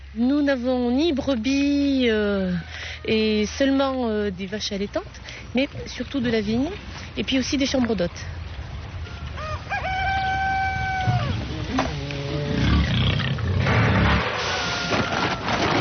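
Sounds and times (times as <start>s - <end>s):
speech: 0.1s - 8.4s
pigs squealing at feeding time: 9.5s - 15.7s
pigs grunting and snorting: 11.3s - 15.3s.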